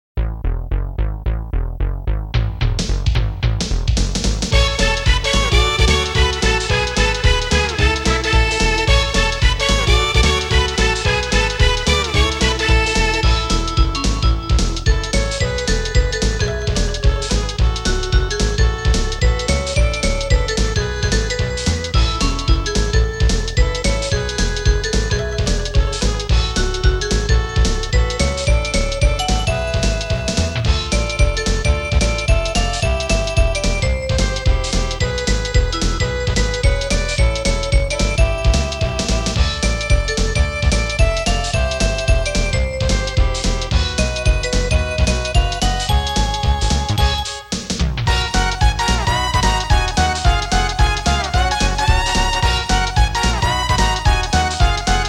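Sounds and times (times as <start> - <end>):
music beat: 0.2 - 55.0.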